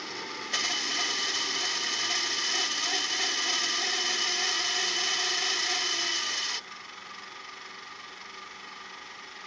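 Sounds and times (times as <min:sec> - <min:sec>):
VCR cassette rewinding: 0:00.1 - 0:06.7.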